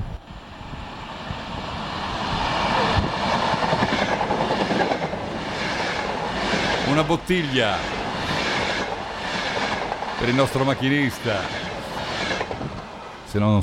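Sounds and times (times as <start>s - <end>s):
train rumbling at a station: 0.0s - 13.6s
train wheels clickety-clack: 2.9s - 6.9s, 8.0s - 13.0s
speech: 7.0s - 8.0s, 10.2s - 11.7s, 13.3s - 13.6s.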